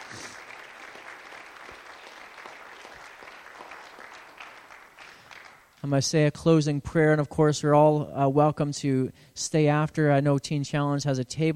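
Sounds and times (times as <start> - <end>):
audience clapping: 0.0 - 5.8
speech: 5.8 - 11.5.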